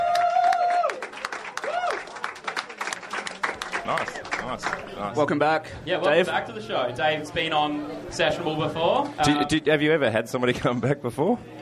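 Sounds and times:
live show audience applause: 0:00.0 - 0:05.0
speech: 0:03.9 - 0:11.5.

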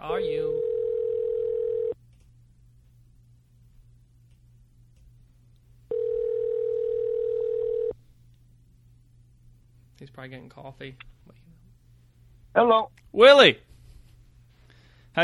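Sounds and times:
speech: 0:00.0 - 0:00.7, 0:10.2 - 0:11.2, 0:12.6 - 0:13.6
faint low hum: 0:00.0 - 0:15.2
telephone line's ringing tone: 0:00.2 - 0:02.0, 0:05.9 - 0:08.0.

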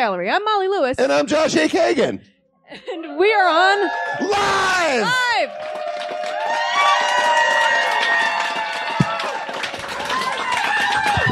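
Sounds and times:
speech: 0:00.0 - 0:05.8
live audience cheering and clapping on a cruise ship: 0:03.5 - 0:11.2.

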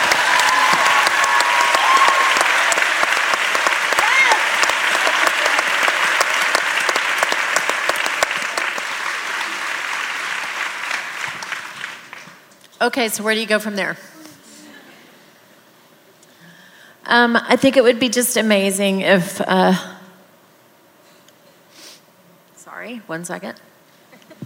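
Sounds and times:
audience applause: 0:00.0 - 0:12.5
speech: 0:12.8 - 0:14.1, 0:17.1 - 0:20.0, 0:23.1 - 0:23.8.

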